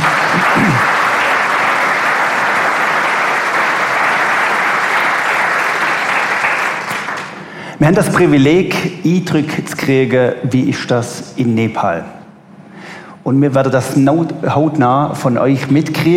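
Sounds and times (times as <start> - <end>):
audience applause: 0.0 - 7.5
speech: 7.8 - 12.2, 13.2 - 16.1.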